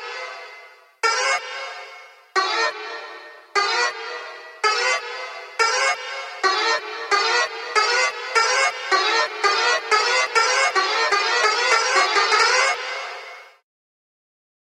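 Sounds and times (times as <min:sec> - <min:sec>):
annoying accordion: 0:01.1 - 0:13.6.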